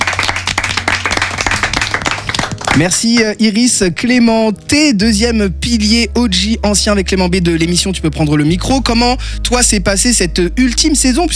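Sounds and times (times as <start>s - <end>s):
team applauding themselves: 0.0s - 3.4s
speech: 2.8s - 11.3s.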